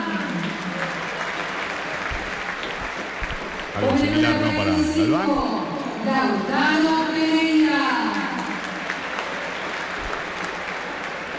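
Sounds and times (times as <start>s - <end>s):
timid stadium crowd applause: 0.0s - 5.4s, 8.0s - 11.3s
speech: 3.8s - 8.0s.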